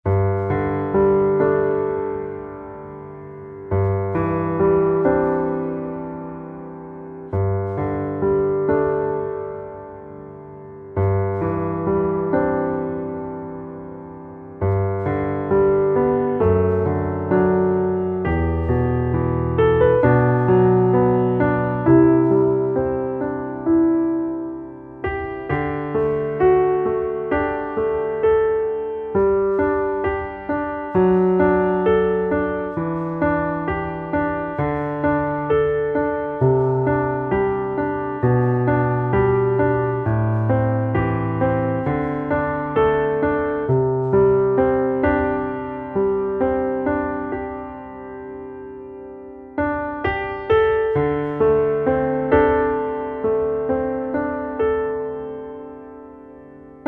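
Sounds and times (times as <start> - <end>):
piano underscore: 0.0 - 56.8.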